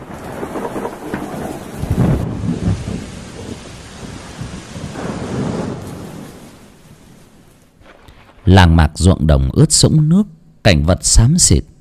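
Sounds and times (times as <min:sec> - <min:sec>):
deep rolling rumbles of thunder: 0:00.0 - 0:09.0
heavy rain from a storm: 0:00.0 - 0:09.0
speech: 0:08.5 - 0:11.7.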